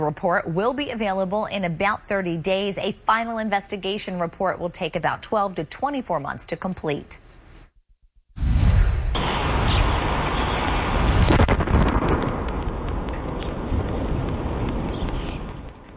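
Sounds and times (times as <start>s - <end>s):
speech: 0.0s - 7.3s
meteor explosion boom: 8.4s - 15.9s.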